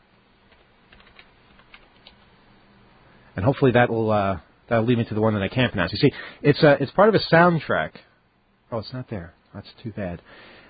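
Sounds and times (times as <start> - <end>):
low steady hiss: 0.0 - 10.6
computer keyboard typing as a search is entered: 0.5 - 2.3
speech: 3.4 - 8.1, 8.7 - 10.6.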